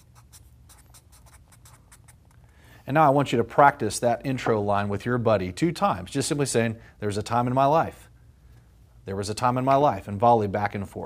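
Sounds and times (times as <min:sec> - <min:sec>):
people writing on paper during a church class: 0:00.0 - 0:02.2
speech: 0:02.9 - 0:08.1, 0:09.0 - 0:11.0.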